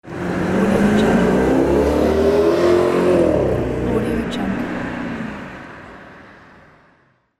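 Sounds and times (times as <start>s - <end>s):
motorcycle: 0.0s - 7.2s.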